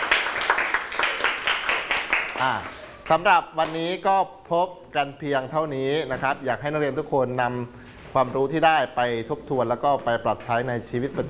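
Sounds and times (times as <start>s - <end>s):
students in a classroom clapping for their own group: 0.0s - 3.8s
speech: 2.4s - 11.2s.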